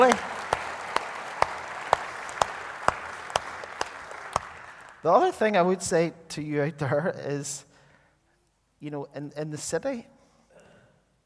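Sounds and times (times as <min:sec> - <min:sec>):
applause: 0:00.0 - 0:05.3
speech: 0:05.0 - 0:07.7, 0:08.8 - 0:10.1.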